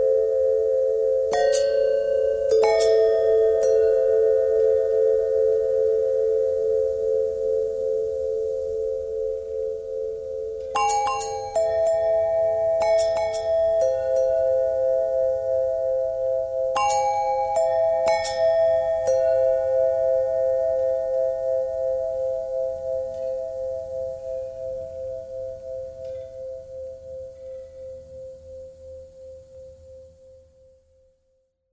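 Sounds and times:
long bell tones: 0.0 - 30.7.

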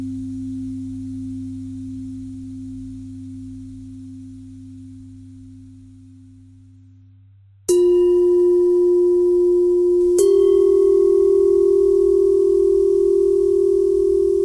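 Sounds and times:
pentatonic bell melody: 7.7 - 14.4.

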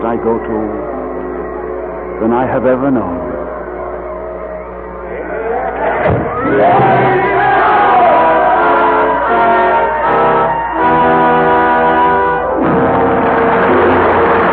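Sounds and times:
large crowd roaring and shouting: 0.0 - 14.5
speech: 0.1 - 1.0, 2.2 - 3.4, 6.0 - 7.4.

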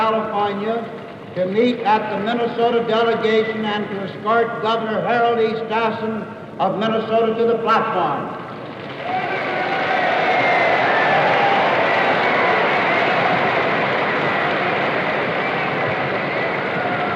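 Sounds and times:
speech: 0.4 - 8.4
convention delegates applauding: 8.6 - 17.1.

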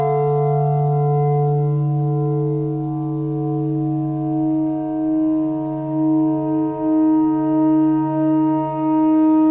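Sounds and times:
clarinet notes: 0.0 - 3.0
noise: 0.0 - 9.4.

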